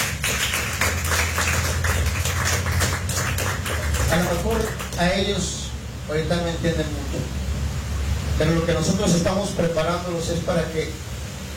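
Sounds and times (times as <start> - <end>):
audience clapping loudly: 0.0 - 5.3
speech: 4.1 - 7.4, 8.4 - 11.1.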